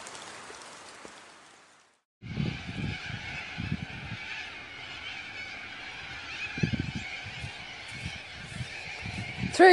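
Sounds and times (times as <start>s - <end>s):
cockatoos calling in flight: 2.2s - 9.7s.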